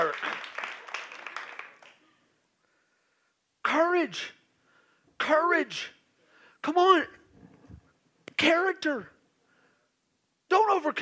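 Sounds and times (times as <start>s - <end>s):
audience clapping: 0.0s - 2.1s
speech: 4.0s - 4.4s, 5.2s - 6.0s, 6.6s - 7.2s, 8.4s - 9.1s, 10.5s - 10.9s.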